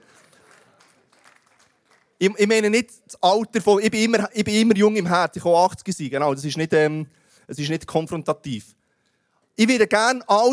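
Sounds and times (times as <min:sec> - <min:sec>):
applause: 0:00.0 - 0:02.3
speech: 0:02.2 - 0:08.8, 0:09.6 - 0:10.5.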